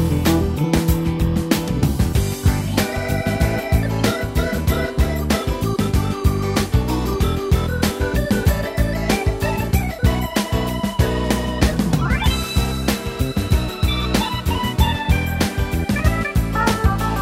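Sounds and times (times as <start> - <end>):
soft rock piano: 0.0 - 17.2.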